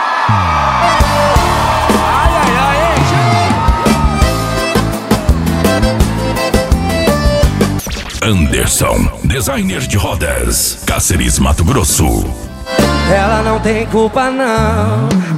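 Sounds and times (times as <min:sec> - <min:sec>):
audience applause and cheering: 0:00.0 - 0:07.8
speech: 0:08.3 - 0:12.5, 0:13.1 - 0:15.3.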